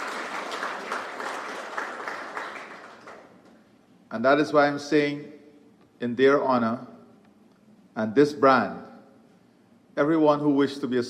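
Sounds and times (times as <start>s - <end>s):
room audience applauding: 0.0s - 3.5s
speech: 4.1s - 5.4s, 6.0s - 6.9s, 8.0s - 8.8s, 10.0s - 11.0s.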